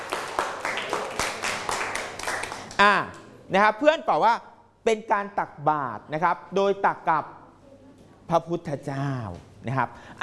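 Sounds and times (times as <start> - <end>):
classroom applause for a student: 0.0 - 3.0
speech: 2.8 - 7.4, 8.3 - 10.2.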